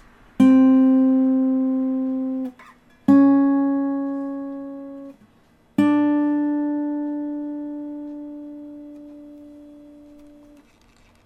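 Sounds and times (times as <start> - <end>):
Yamaha guitar vibration: 0.4 - 11.2.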